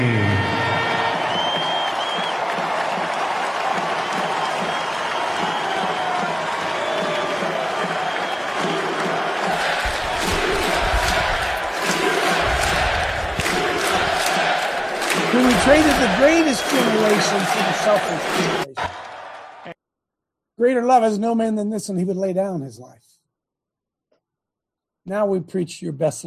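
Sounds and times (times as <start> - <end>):
crowd applause: 0.0 - 19.8
speech: 15.7 - 19.0, 20.6 - 23.1, 25.1 - 26.2.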